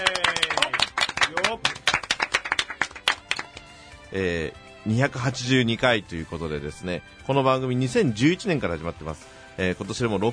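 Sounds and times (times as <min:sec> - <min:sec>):
applause: 0:00.0 - 0:03.8
speech: 0:04.1 - 0:10.3.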